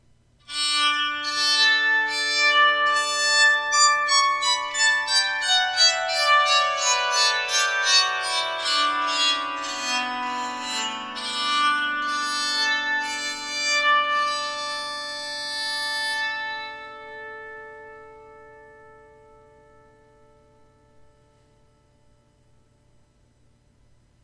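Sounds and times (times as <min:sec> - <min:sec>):
bowed psaltery playing a scale: 0:00.4 - 0:22.3.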